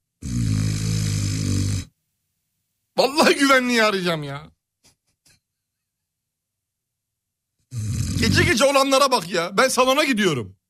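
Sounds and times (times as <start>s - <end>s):
loud snore: 0.2s - 2.0s, 7.7s - 8.6s
speech: 3.0s - 4.5s, 7.8s - 10.6s.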